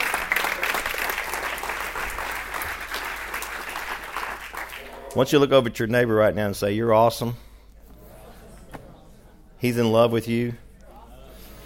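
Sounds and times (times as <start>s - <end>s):
people clapping: 0.0s - 5.3s
speech: 5.2s - 7.4s, 9.6s - 10.6s.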